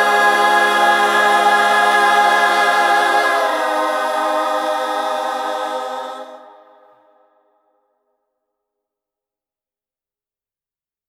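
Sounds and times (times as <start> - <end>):
chorus singing: 0.0 - 7.2.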